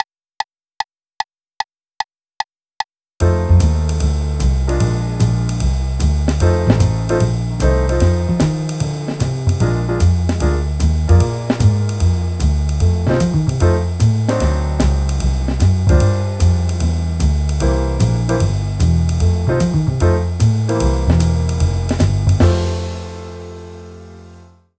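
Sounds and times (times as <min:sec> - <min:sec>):
blues music: 0:03.2 - 0:23.9.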